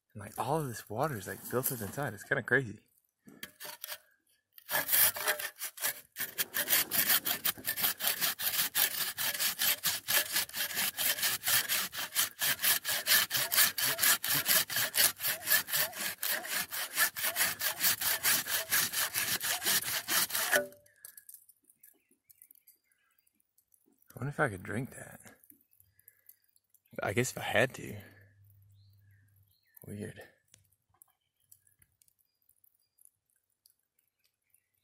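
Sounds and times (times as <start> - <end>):
speech: 0.2 - 3.8, 24.4 - 25.2, 27.1 - 28.1, 29.9 - 30.3
hand-sawing through a tree limb: 3.4 - 4.0, 4.6 - 20.8.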